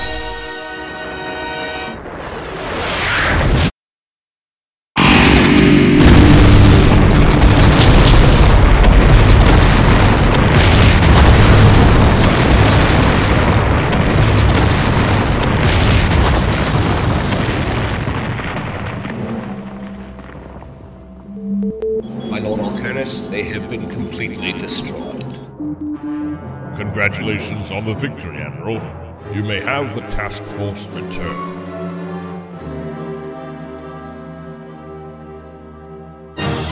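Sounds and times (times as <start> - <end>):
weapon detonation explosion rumbling: 1.9 - 3.7, 5.0 - 21.6
speech: 27.0 - 31.6.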